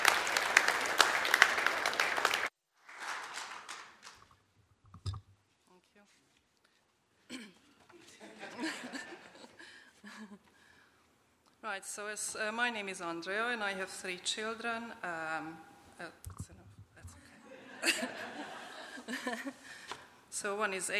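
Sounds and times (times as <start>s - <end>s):
audience applause in a church welcoming the next speaker: 0.0s - 4.2s
scattered chuckles: 7.3s - 10.5s, 17.3s - 19.8s
speech: 11.7s - 16.4s, 17.8s - 18.2s, 19.2s - 19.6s, 20.4s - 20.9s.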